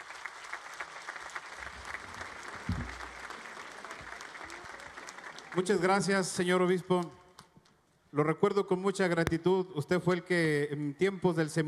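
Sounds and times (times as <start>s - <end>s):
audience applause: 0.0s - 6.4s
speech: 5.5s - 7.2s, 8.1s - 11.6s.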